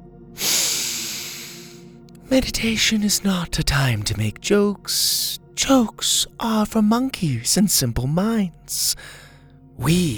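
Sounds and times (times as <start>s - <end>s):
deep breath: 0.4s - 1.9s, 9.0s - 9.6s
speech: 2.3s - 9.2s, 9.8s - 10.1s.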